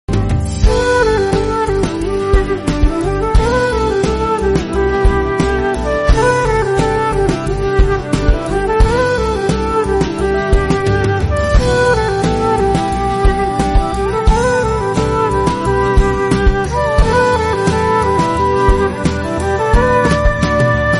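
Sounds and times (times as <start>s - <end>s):
instrumental ringtone: 0.6s - 20.9s.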